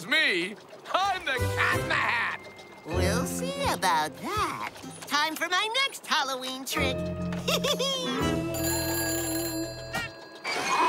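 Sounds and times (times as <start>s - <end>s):
speech: 0.2s - 8.7s
telephone ringing: 8.3s - 10.8s.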